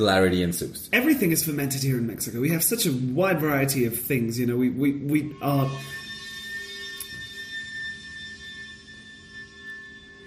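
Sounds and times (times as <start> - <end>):
speech: 0.0 - 6.0
alarm siren: 5.0 - 10.2.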